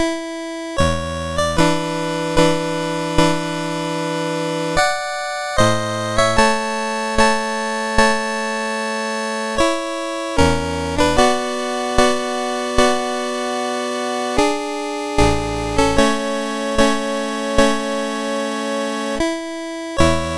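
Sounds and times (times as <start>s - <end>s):
prelude in A major on a MOS6581R4 sound chip: 0.8s - 20.3s.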